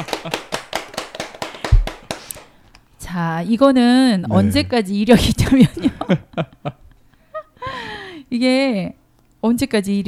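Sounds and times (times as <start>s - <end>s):
speech: 0.0s - 0.5s, 3.1s - 6.8s, 8.3s - 10.0s
small group clapping: 0.0s - 2.5s.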